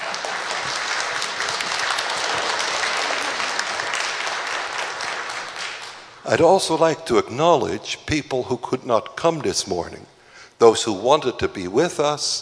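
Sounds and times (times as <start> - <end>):
audience applauding: 0.0 - 6.2
speech: 6.3 - 12.4.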